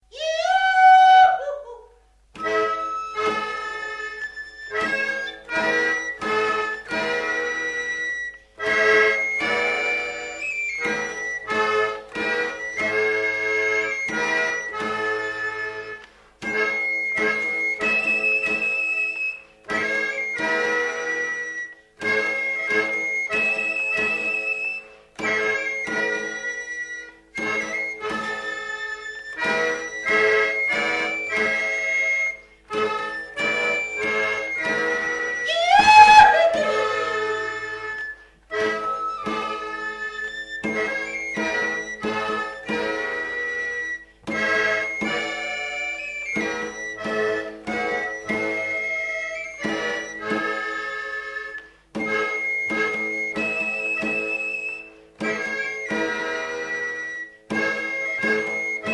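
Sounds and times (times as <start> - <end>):
flute: 0.1 - 58.9.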